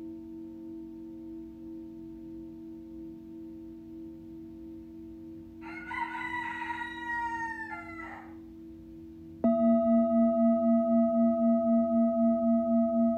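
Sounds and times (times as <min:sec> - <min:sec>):
rooster crowing: 0:05.6 - 0:08.4
singing bowl ringing: 0:09.4 - 0:13.1.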